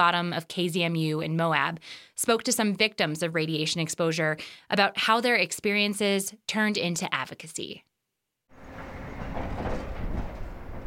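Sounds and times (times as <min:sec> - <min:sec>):
speech: 0:00.0 - 0:07.9
heavy trucks hauling uranium mill tailings: 0:08.5 - 0:10.8
mechanical rattling: 0:08.6 - 0:10.8.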